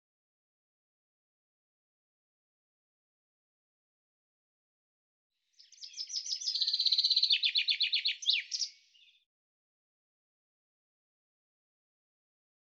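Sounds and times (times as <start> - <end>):
common chaffinch song: 5.5 - 9.3.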